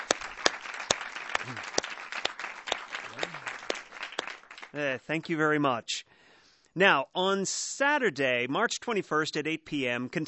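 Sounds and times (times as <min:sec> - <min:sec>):
audience applause: 0:00.0 - 0:04.9
speech: 0:01.5 - 0:01.8, 0:04.7 - 0:06.1, 0:06.8 - 0:10.2.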